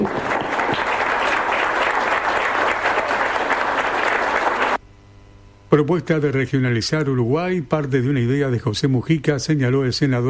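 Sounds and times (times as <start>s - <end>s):
audience applause: 0.0s - 4.8s
speech: 5.7s - 10.2s.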